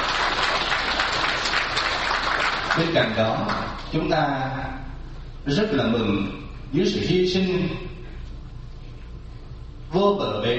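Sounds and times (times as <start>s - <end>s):
audience applause welcoming elder Buddhist monks at a Vietnamese ceremony: 0.0s - 3.0s
speech: 2.8s - 7.9s, 9.9s - 10.5s.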